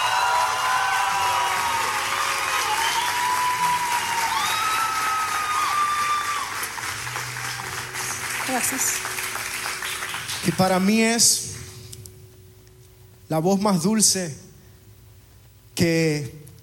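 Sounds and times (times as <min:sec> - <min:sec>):
audience applause: 0:00.0 - 0:11.0
speech: 0:08.6 - 0:09.1, 0:10.4 - 0:11.5, 0:13.3 - 0:14.4, 0:15.8 - 0:16.4.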